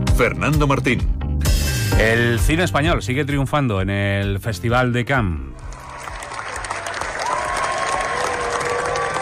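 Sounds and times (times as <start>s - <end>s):
speech: 0.2s - 1.2s, 1.9s - 5.5s
large crowd giving standing ovation at film festival: 5.6s - 9.1s.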